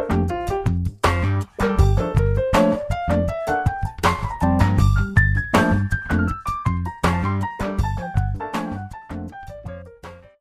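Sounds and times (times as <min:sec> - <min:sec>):
smooth jazz lick in G minor: 0:00.0 - 0:09.4.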